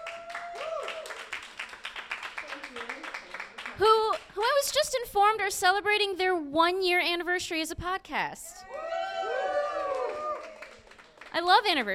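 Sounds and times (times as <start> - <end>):
crowd applause: 0.0 - 3.9, 9.0 - 11.3
speech: 4.6 - 8.5, 11.4 - 11.9.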